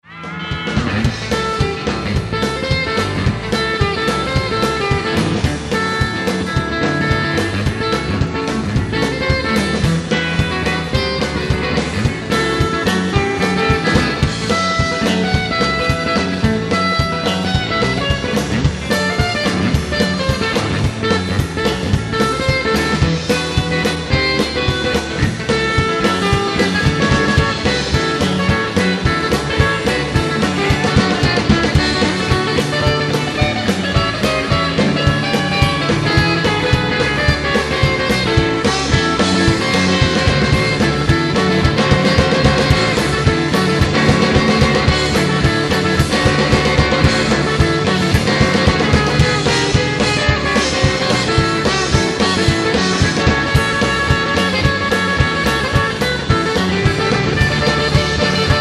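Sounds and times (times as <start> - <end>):
guitar solo: 0.0 - 58.5.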